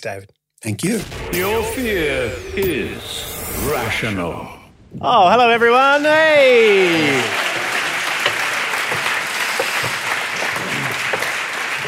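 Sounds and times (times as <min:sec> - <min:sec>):
speech: 0:00.0 - 0:07.4
audience applause: 0:06.4 - 0:11.8.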